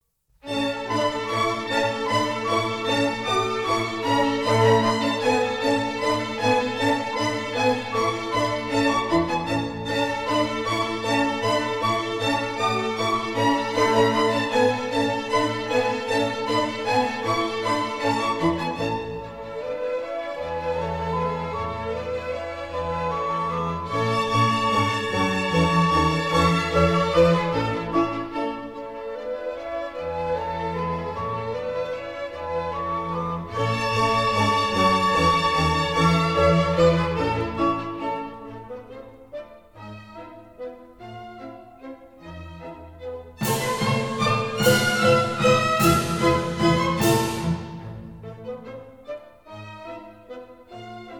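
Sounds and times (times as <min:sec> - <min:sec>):
dance piece in A major: 0:00.0 - 0:51.1.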